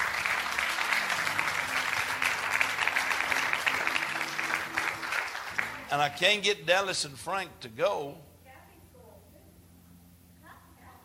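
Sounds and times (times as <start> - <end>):
crowd applauding: 0.0 - 6.6
speech: 5.9 - 8.3.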